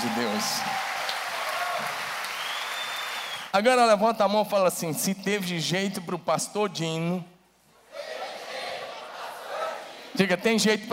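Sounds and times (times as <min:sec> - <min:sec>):
speech: 0:00.0 - 0:00.9, 0:03.6 - 0:07.3, 0:10.2 - 0:10.9
audience applauding: 0:00.0 - 0:03.5.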